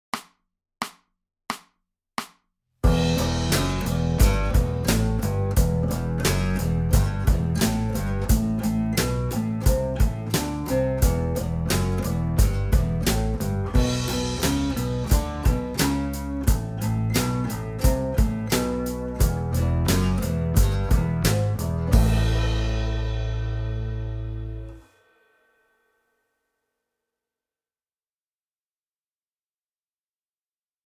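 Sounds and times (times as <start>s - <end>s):
rock music: 2.9s - 24.8s.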